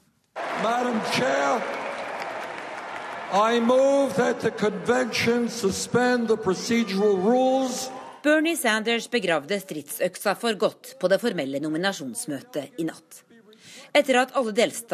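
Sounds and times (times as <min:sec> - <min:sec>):
convention hall crowd cheering: 0:00.4 - 0:08.3
speech: 0:00.6 - 0:01.9, 0:03.3 - 0:14.9.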